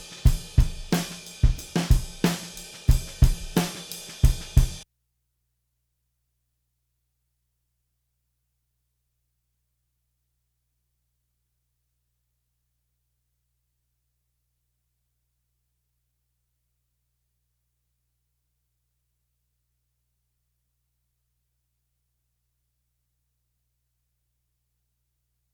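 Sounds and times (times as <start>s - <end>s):
raw distorted snare drum: 0.0s - 4.8s.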